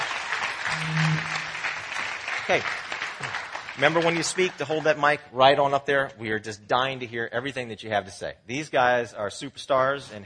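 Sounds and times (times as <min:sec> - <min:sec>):
audience applause: 0:00.0 - 0:05.0
speech: 0:02.5 - 0:02.9, 0:03.8 - 0:10.2.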